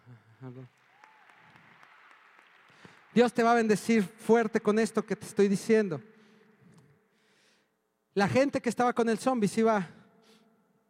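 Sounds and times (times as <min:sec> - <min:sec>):
speech: 0:00.4 - 0:00.9, 0:03.2 - 0:06.1, 0:08.2 - 0:10.0
audience applause: 0:00.7 - 0:03.7.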